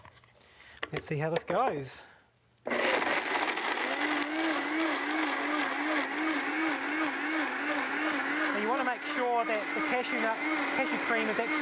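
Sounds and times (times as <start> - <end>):
speech: 0.9 - 2.9, 8.9 - 11.6
blender blending cashews and water: 2.7 - 11.6.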